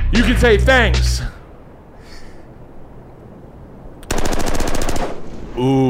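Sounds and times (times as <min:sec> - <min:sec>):
speech: 0:00.2 - 0:01.3, 0:05.6 - 0:05.8
gunfire: 0:04.1 - 0:05.4.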